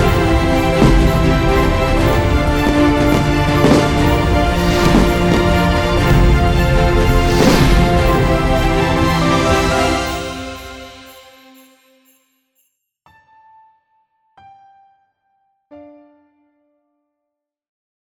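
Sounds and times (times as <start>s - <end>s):
epic inspirational New Year countdown music: 0.0s - 11.7s.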